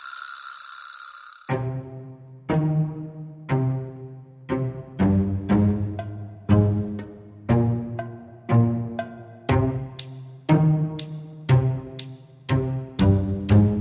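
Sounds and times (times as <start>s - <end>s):
percussion: 0.0s - 1.5s, 5.6s - 13.7s
bass: 4.5s - 13.7s.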